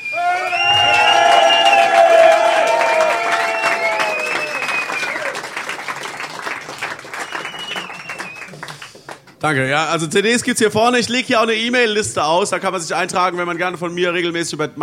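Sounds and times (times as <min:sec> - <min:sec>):
audience applause and cheering: 0:00.0 - 0:09.3
speech: 0:09.4 - 0:14.8.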